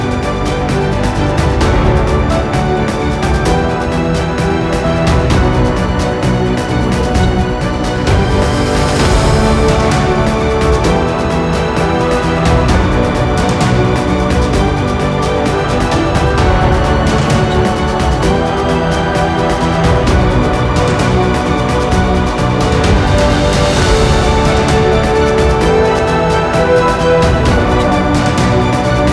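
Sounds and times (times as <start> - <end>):
epic emotional corporate music: 0.0 - 29.1.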